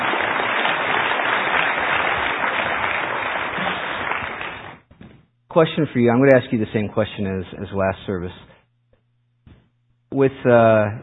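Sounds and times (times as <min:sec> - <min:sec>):
audience applause: 0:00.0 - 0:04.8
speech: 0:05.6 - 0:08.5, 0:10.2 - 0:11.0.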